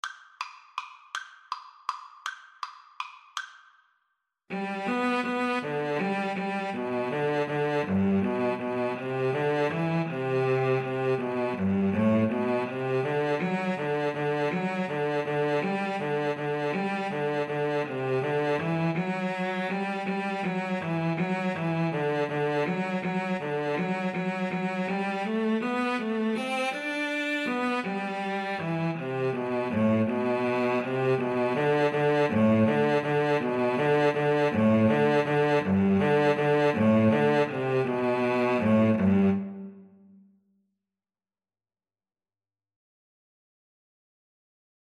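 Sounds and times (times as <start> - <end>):
cello duet: 4.5 - 40.0.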